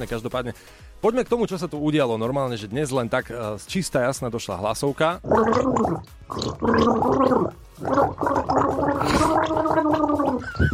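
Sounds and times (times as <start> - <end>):
speech: 0.0 - 10.7
person gargling water while humming a melody: 5.2 - 10.5.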